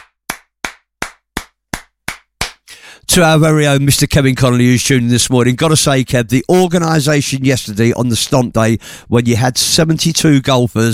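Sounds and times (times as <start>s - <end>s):
hand claps: 0.0s - 2.7s
speech: 3.1s - 10.9s.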